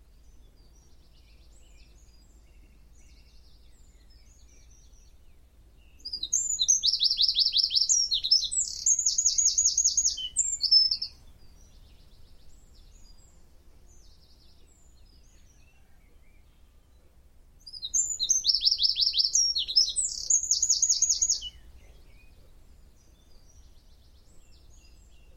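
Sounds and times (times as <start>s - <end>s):
Eurasian wren song: 0.0s - 25.3s.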